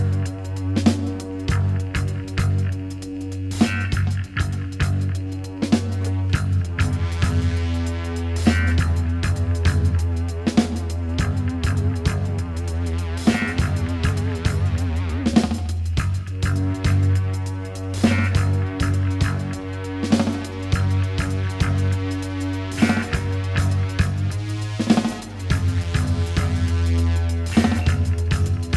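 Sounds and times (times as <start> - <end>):
deep synth: 0.0 - 28.7.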